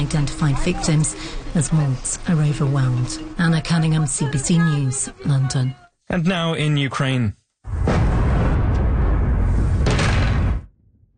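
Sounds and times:
speech: 0:00.0 - 0:07.4
explosions during night attack: 0:07.7 - 0:11.1.

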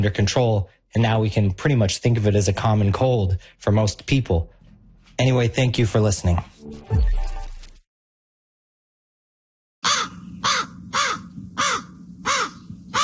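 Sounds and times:
speech: 0:00.0 - 0:04.6, 0:05.2 - 0:07.3
crow cawing: 0:09.8 - 0:13.0.

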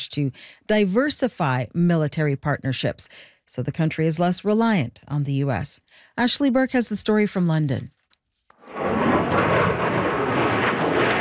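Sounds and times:
speech: 0:00.0 - 0:08.0
next-generation fighter jet roaring at an international air show in the UK: 0:08.6 - 0:11.1.

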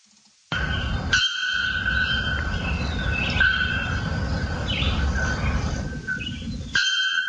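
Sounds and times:
bare-throated bellbird calling: 0:00.5 - 0:07.2.

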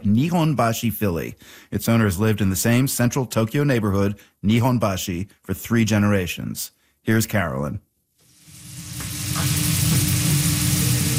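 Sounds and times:
speech: 0:00.0 - 0:07.9
steak sizzling on a grill: 0:08.2 - 0:11.1.

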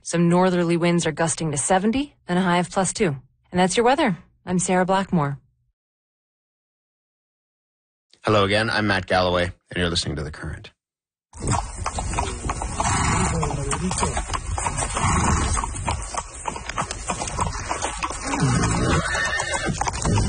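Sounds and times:
speech: 0:00.0 - 0:05.4, 0:08.2 - 0:11.7, 0:13.8 - 0:14.4
horse hooves clip-clopping: 0:11.4 - 0:20.2.

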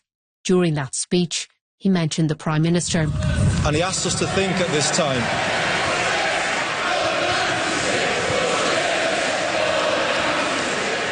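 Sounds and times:
speech: 0:00.4 - 0:05.6
stadium crowd chanting: 0:03.2 - 0:11.1.

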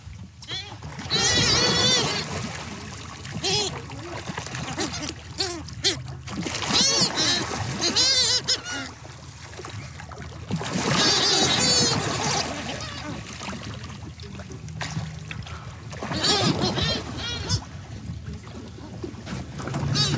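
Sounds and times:
boat noise: 0:00.0 - 0:20.1
water splashing at sea: 0:00.0 - 0:20.1
great shearwaters calling at sea: 0:00.5 - 0:13.6, 0:15.4 - 0:18.0, 0:19.7 - 0:20.1.

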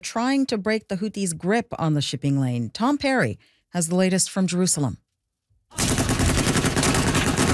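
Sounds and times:
speech: 0:00.1 - 0:05.1
heavy machine guns mounted on pickup trucks firing: 0:05.8 - 0:07.5.

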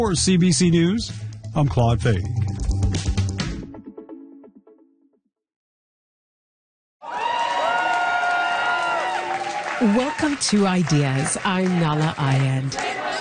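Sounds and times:
speech: 0:00.0 - 0:02.6, 0:09.8 - 0:12.9
crowd cheering and shouting at a Quebec separatist election night party: 0:07.0 - 0:13.1.

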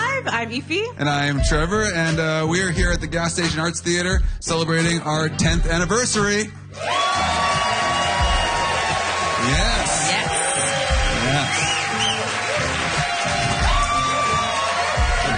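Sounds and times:
speech: 0:00.4 - 0:07.2
live audience cheering: 0:06.8 - 0:15.3.

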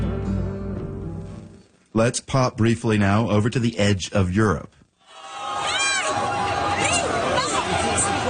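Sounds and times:
speech: 0:02.0 - 0:04.8
crowd of several hundred Spaniards cheering: 0:05.0 - 0:08.2.

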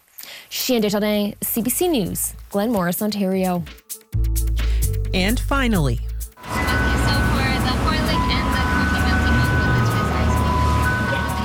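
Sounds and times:
speech: 0:00.6 - 0:04.4, 0:05.2 - 0:06.1
ice cream truck heavy low engine rumble: 0:06.4 - 0:11.4
ice cream truck jingle in Richmond, British Columbia: 0:06.4 - 0:11.4.

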